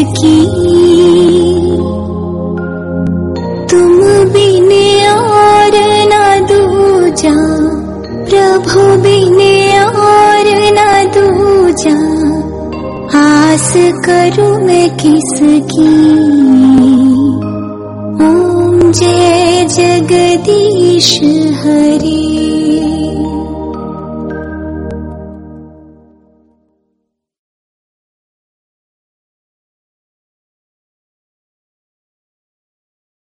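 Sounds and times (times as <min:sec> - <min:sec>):
soft devotional song: 0:00.0 - 0:26.2.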